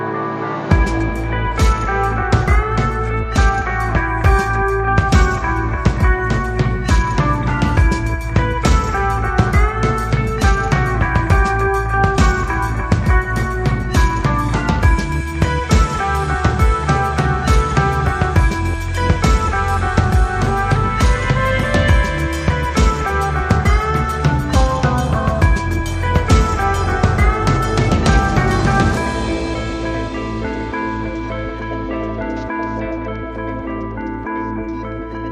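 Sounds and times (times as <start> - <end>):
drums: 0.2 - 34.8.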